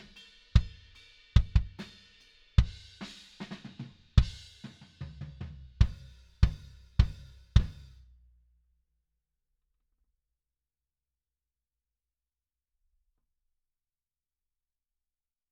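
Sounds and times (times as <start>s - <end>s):
kick drum: 1.4s - 1.8s, 2.6s - 2.8s, 4.2s - 4.5s, 5.2s - 7.9s.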